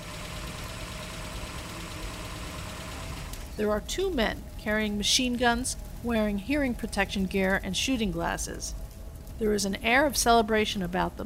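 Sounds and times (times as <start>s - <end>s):
jeep engine idling after pulling up: 0.0s - 3.5s
speech: 3.6s - 8.8s, 9.4s - 11.2s.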